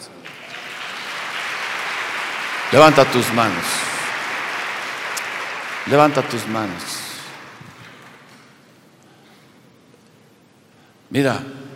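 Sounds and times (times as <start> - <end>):
audience applauding: 0.2 - 8.7
speech: 2.7 - 3.8, 5.8 - 7.0, 11.1 - 11.6.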